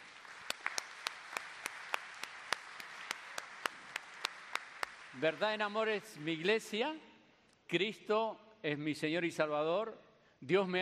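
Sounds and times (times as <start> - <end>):
welcoming audience applause: 0.0 - 5.7
speech: 5.2 - 7.1, 7.7 - 10.8.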